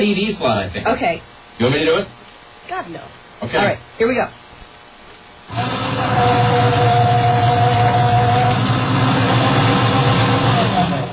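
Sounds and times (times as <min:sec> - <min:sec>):
speech: 0:00.0 - 0:04.4, 0:05.5 - 0:06.8
motorized machine consistent with a paper shredder: 0:05.5 - 0:11.1.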